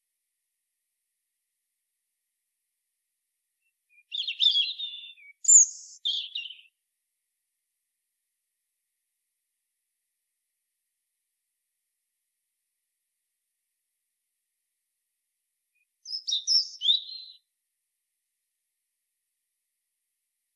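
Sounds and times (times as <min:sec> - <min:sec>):
European robin Erithacus rubecula singing: 0:03.9 - 0:06.7, 0:15.8 - 0:17.4.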